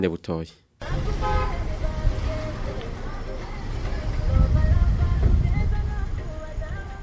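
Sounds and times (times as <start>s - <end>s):
road traffic on national route 3, Bujumbura-Rumonge road in Burundi, potholed stretch: 0.8s - 7.0s
car horn toots: 1.1s - 1.7s.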